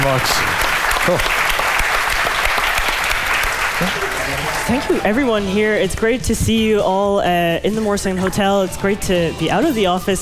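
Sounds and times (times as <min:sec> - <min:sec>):
speech: 0:00.0 - 0:01.5, 0:03.8 - 0:10.1
crowd applauding: 0:00.0 - 0:05.4.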